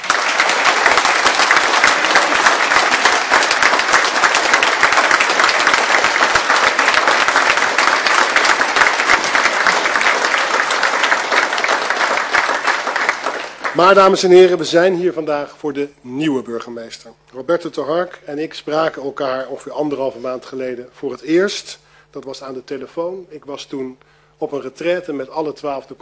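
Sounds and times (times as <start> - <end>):
audience applause: 0.0 - 14.5
speech: 13.8 - 26.0.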